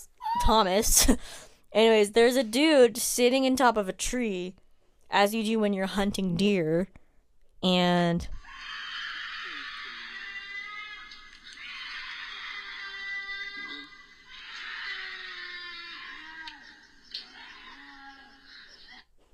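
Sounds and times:
speech: 0.0 - 7.0, 7.6 - 8.4
cougar screaming: 8.5 - 19.0.

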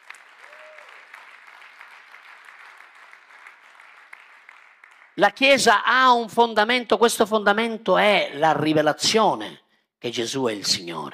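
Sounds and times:
audience applause: 0.0 - 5.2
speech: 5.2 - 11.1.

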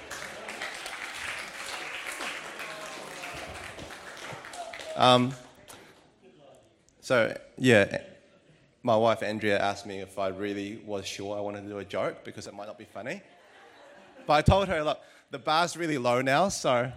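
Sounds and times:
audience clapping: 0.0 - 6.1
speech: 5.0 - 5.4, 7.1 - 8.1, 8.8 - 13.4, 14.3 - 16.9
laughter: 13.2 - 14.9.

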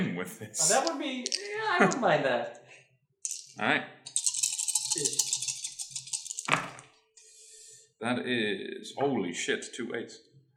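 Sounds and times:
speech: 0.0 - 2.6, 3.6 - 4.2, 5.0 - 5.3, 8.0 - 10.3
dice rolling: 0.6 - 2.0, 3.3 - 6.9.

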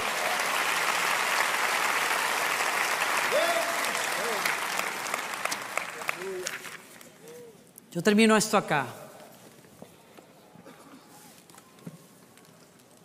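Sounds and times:
people cheering: 0.0 - 6.6
crowd applause: 0.0 - 7.0
speech: 7.9 - 9.0.

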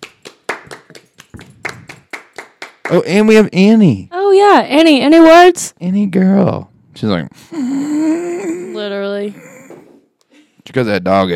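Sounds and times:
hand clapping: 0.0 - 3.1
speech: 2.9 - 7.6, 8.8 - 9.4, 10.7 - 11.3.

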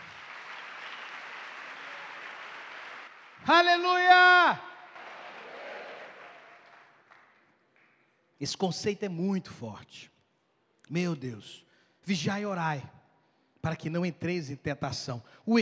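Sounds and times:
audience applause: 0.0 - 7.5
speech: 3.4 - 4.7, 8.4 - 10.1, 10.9 - 13.0, 13.6 - 15.5.

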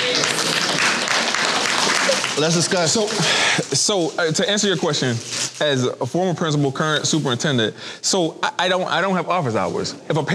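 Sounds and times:
audience clapping: 0.0 - 3.8
speech: 2.4 - 10.3.

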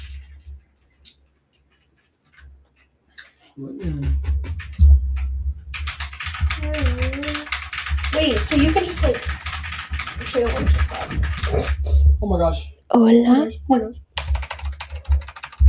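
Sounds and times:
speech: 3.6 - 4.1, 8.3 - 9.4, 10.3 - 14.0
Apex Pro TKL keyboard with white switches clacking: 3.8 - 11.8, 14.2 - 15.6.

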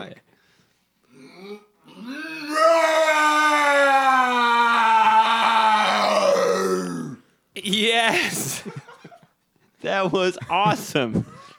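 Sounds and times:
person imitating a lion's roar: 1.2 - 7.2
speech: 9.8 - 11.3.

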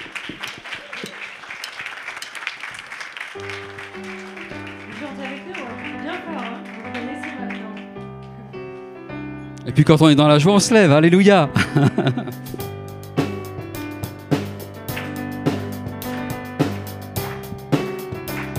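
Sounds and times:
audience applause: 0.0 - 8.1, 14.9 - 18.5
speech: 9.7 - 12.6
laughter: 11.4 - 12.6.

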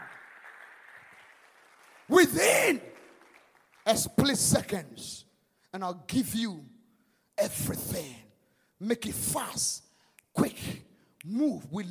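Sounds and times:
audience clapping: 0.0 - 4.8
speech: 2.1 - 2.9, 3.9 - 6.7, 7.4 - 8.2, 8.8 - 9.8, 10.4 - 11.8.

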